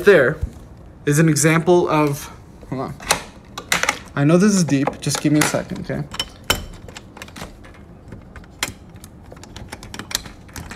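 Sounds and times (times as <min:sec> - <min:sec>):
speech: 0:00.0 - 0:03.1, 0:04.2 - 0:06.2
door handle and latch clicking and rattling: 0:03.0 - 0:10.7.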